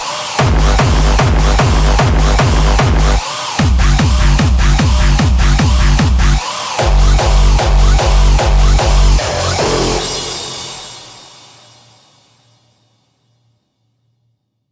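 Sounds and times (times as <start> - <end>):
kick drums: 0.4 - 9.2.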